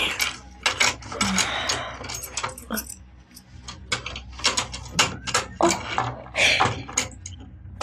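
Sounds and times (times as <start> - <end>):
keys taken out of a handbag: 0.1 - 5.8.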